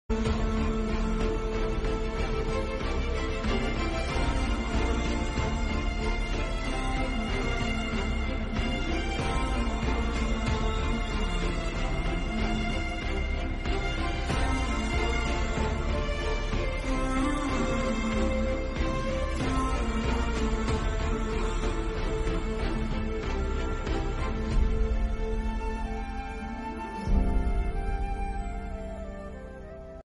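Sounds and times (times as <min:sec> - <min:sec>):
motivational background music: 0:00.0 - 0:30.0.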